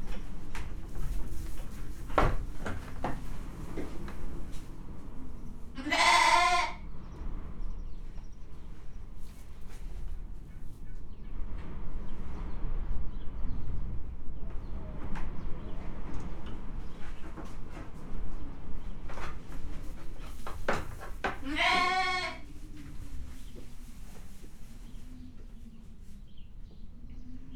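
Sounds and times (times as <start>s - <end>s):
puszta wind in Hortobágy National Park: 0.0s - 27.5s
domestic goat in Hortobágy National Park: 5.8s - 6.8s, 21.2s - 22.6s.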